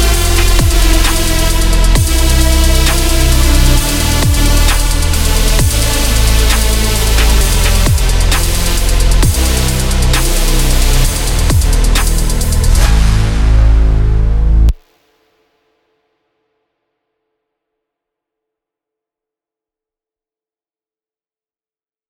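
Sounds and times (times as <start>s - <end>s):
slowed bass remix: 0.0s - 14.8s.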